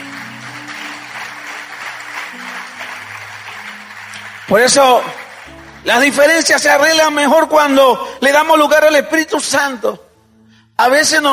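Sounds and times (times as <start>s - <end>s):
audience applause: 0.0s - 6.5s
speech: 4.5s - 5.2s, 5.8s - 10.0s, 10.8s - 11.3s.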